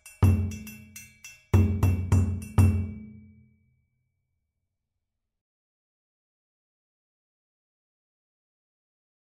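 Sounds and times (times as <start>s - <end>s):
kuku rhythm on dunun drums: 0.0s - 3.4s
djembe: 1.6s - 3.1s.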